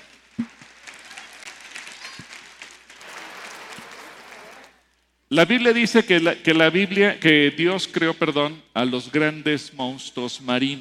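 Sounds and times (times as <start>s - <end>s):
audience applause: 0.0s - 4.9s
speech: 5.3s - 10.7s.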